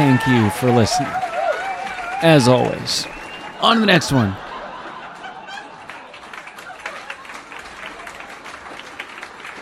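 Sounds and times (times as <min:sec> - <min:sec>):
speech: 0:00.0 - 0:01.3, 0:02.2 - 0:04.4
crowd applauding: 0:00.0 - 0:09.6
faint laughter: 0:03.6 - 0:07.5.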